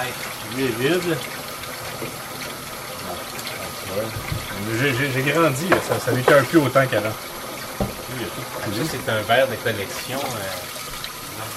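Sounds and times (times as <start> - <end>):
speech: 0.0 - 2.3, 3.9 - 10.7
washing dishes under running tap water: 0.0 - 11.5.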